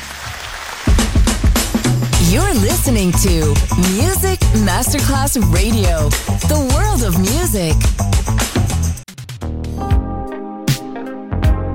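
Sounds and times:
loud round of applause: 0.0 - 2.8
rhythmic low thumps: 0.9 - 10.2
speech: 2.3 - 8.4.

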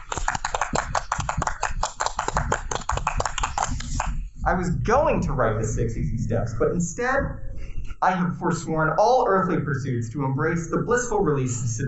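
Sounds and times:
audience round of applause: 0.0 - 4.0
speech: 4.5 - 11.8.

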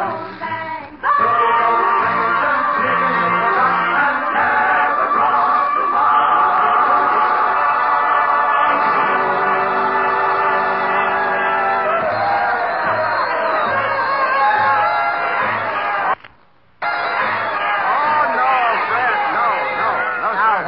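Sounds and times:
crowd chatter in a busy dance hall: 0.2 - 16.2, 16.9 - 20.6
whoops: 11.6 - 16.1.

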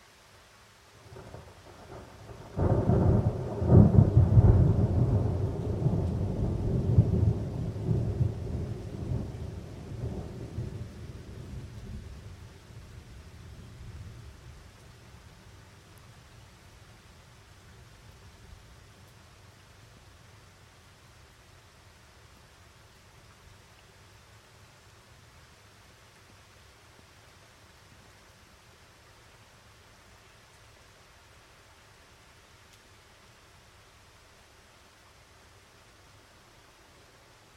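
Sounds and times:
soft steady hiss of rain: 0.0 - 37.5
thunder rumbling from a mountain storm: 2.0 - 12.1.

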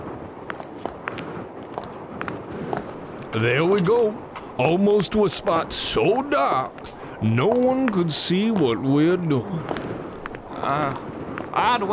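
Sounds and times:
booted footsteps walking along a road: 0.4 - 11.6
quiet hiss: 2.9 - 11.9
speech: 3.3 - 9.9, 10.6 - 11.9.

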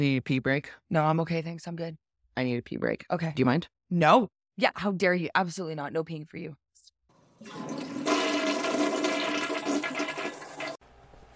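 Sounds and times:
speech: 0.0 - 6.6, 7.4 - 8.0
toilet flushing: 7.3 - 10.8.

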